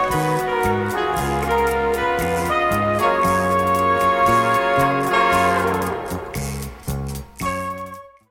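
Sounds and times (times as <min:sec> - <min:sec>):
slow bossa nova music: 0:00.0 - 0:08.2.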